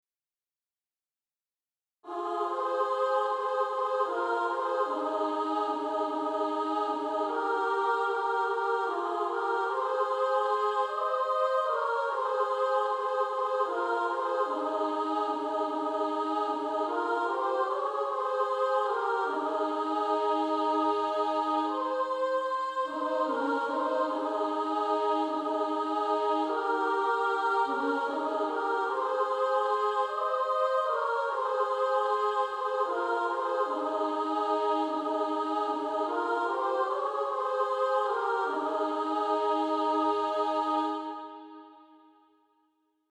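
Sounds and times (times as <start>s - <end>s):
female choir singing soprano and alto: 2.0s - 42.1s.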